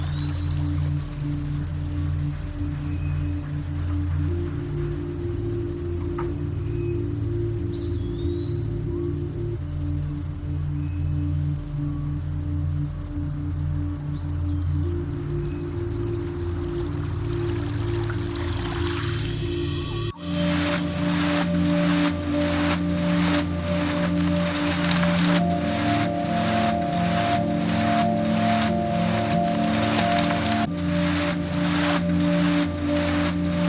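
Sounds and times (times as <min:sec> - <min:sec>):
white tail woods nature sounds: 0:00.0 - 0:33.6.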